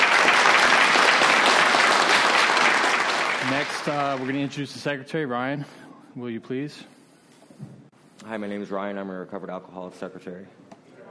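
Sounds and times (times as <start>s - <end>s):
round of applause: 0.0s - 4.6s
speech: 3.6s - 7.0s, 7.6s - 10.6s.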